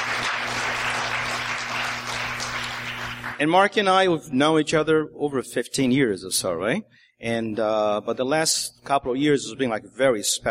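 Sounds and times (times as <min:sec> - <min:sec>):
people clapping: 0:00.0 - 0:03.5
speech: 0:03.4 - 0:10.4.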